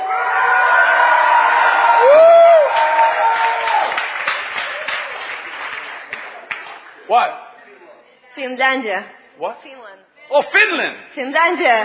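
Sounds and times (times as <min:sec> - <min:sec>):
person whooping: 0:00.0 - 0:03.9
crowd of fans from Prague shouting and cheering: 0:00.0 - 0:05.3
scattered clapping: 0:02.7 - 0:07.0
speech: 0:07.1 - 0:07.4, 0:08.4 - 0:11.8.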